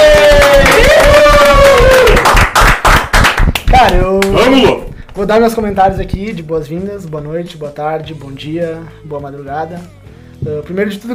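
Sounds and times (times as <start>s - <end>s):
whoop or whistle: 0.0s - 2.2s
people cheering: 0.0s - 2.8s
group clapping: 0.0s - 5.3s
speech: 5.2s - 11.1s.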